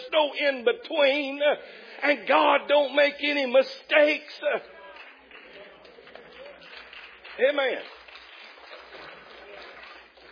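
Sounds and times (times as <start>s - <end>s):
speech: 0.1s - 4.8s, 7.4s - 8.0s
audience clapping: 4.6s - 10.3s.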